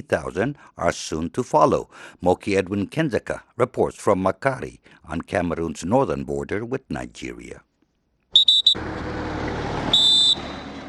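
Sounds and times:
speech: 0:00.0 - 0:07.7
whistle blasts by Cameroon troops for departure: 0:08.3 - 0:08.8, 0:09.9 - 0:10.8.

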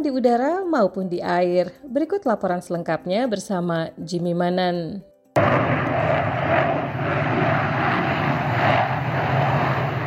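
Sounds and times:
speech: 0:00.0 - 0:05.1
Blue Angels jet aircraft roaring at air show: 0:05.4 - 0:10.0.

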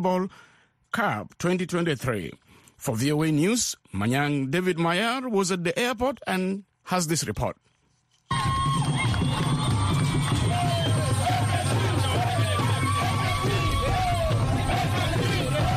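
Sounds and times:
speech: 0:00.0 - 0:07.7
fans beating drums at Juba International Airport: 0:08.3 - 0:15.7
thousands of fans singing and cheering at Juba International Airport: 0:08.5 - 0:15.7.

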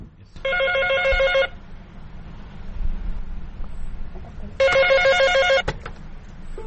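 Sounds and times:
landline telephone ringing in a room full of landline phones: 0:00.5 - 0:01.6, 0:04.6 - 0:05.7.

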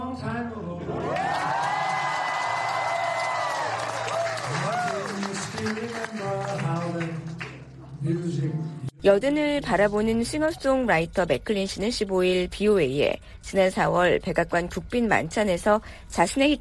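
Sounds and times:
speech: 0:00.2 - 0:01.0, 0:05.6 - 0:07.3, 0:08.0 - 0:16.5
applause at a state dinner in the White House: 0:01.0 - 0:07.8.

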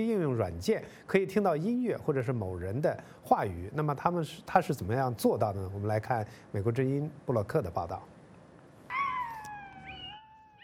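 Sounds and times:
speech: 0:00.0 - 0:08.1
faint hiss: 0:00.0 - 0:10.6
dog howling like a wolf: 0:08.9 - 0:10.6.

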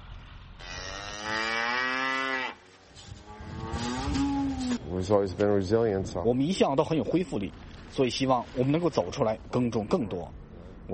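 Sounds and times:
cattle mooing: 0:00.6 - 0:02.6, 0:03.2 - 0:04.8
speech: 0:05.0 - 0:10.9.

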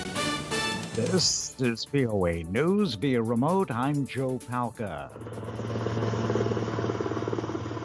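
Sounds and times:
speech: 0:01.0 - 0:05.8
helicopter flying to the White House: 0:05.1 - 0:07.8.

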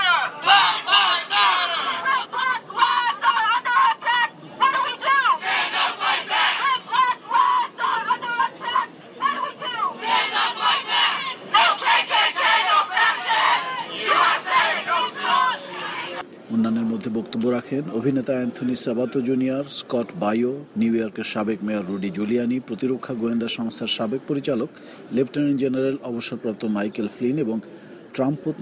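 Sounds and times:
protesters chanting slogans outside the Republican convention: 0:00.0 - 0:16.2
speech: 0:17.6 - 0:28.6.

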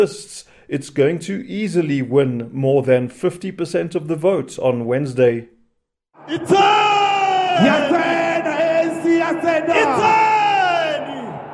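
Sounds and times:
speech: 0:00.0 - 0:05.5, 0:06.3 - 0:06.8, 0:07.6 - 0:08.1
thousands of supporters cheering and yelling at an ANC election rally in a Soweto stadium: 0:06.2 - 0:11.5.

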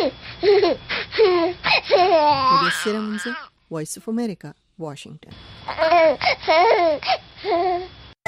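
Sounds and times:
baby a few weeks old crying: 0:00.0 - 0:03.5, 0:05.7 - 0:07.9
speech: 0:00.0 - 0:08.0.

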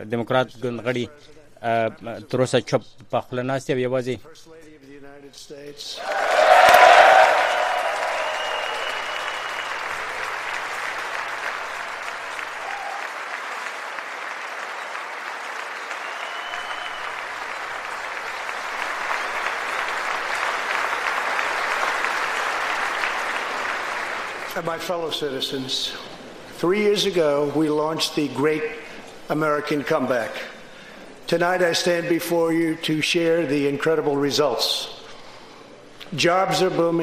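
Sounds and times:
speech: 0:00.0 - 0:04.6, 0:05.2 - 0:07.2, 0:24.6 - 0:30.5, 0:31.3 - 0:35.0, 0:36.1 - 0:37.0
Members of Congress applauding President Trump: 0:06.0 - 0:25.0.

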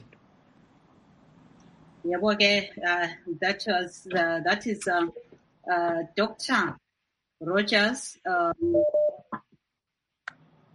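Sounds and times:
speech: 0:02.0 - 0:06.8, 0:07.4 - 0:09.2
incoming call beeps on a conference line: 0:08.5 - 0:09.3.

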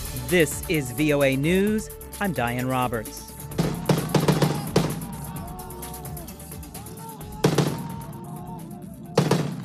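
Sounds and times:
speech: 0:00.3 - 0:03.3
gunfire of Syrian rebels shooting down a government helicopter: 0:03.6 - 0:05.1, 0:07.4 - 0:08.0, 0:09.1 - 0:09.6.

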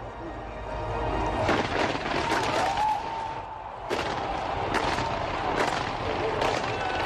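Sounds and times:
crowd noise: 0:00.0 - 0:07.0
fireworks at Olympic closing ceremony: 0:01.4 - 0:07.0.

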